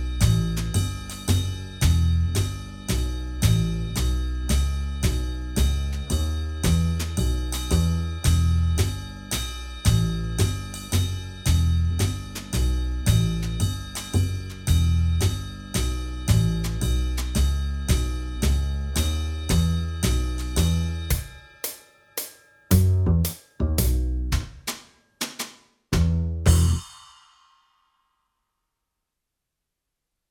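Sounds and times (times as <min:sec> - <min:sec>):
swing music track: 0:00.0 - 0:21.2, 0:22.7 - 0:24.6, 0:26.0 - 0:26.8.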